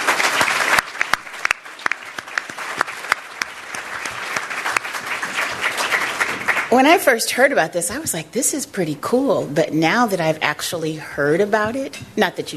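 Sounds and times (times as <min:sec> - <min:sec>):
audience applauding a panel: 0:00.0 - 0:06.8
speech: 0:06.7 - 0:12.5.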